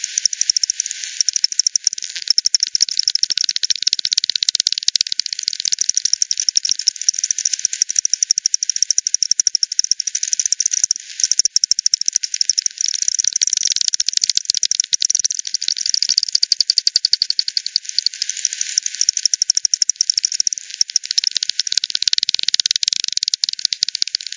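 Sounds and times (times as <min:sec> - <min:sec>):
bat echolocation clicks: 0:00.0 - 0:24.3.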